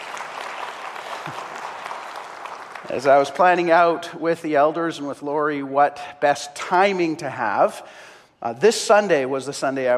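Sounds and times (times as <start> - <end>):
congregation applause during a Sunday service: 0.0 - 3.3
speech: 1.2 - 1.4, 2.9 - 9.9.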